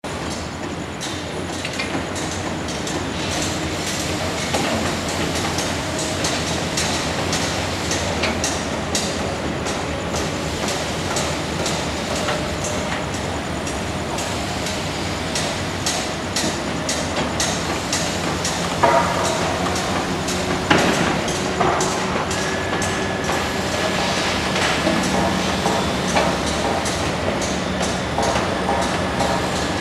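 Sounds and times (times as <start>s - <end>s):
construction site ambience: 0.0s - 29.8s.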